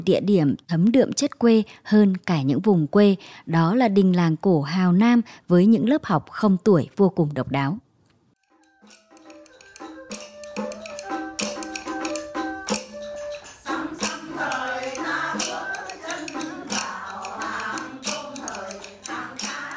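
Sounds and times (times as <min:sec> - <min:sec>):
speech: 0:00.0 - 0:07.8
xẩm folk song melody: 0:08.4 - 0:19.7.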